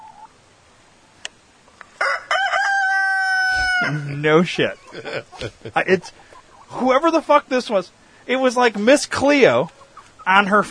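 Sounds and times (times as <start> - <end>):
faint clicks: 1.2 - 1.9
rooster crowing in the background: 2.0 - 4.2
laughter: 3.8 - 6.9
speech: 3.8 - 10.6.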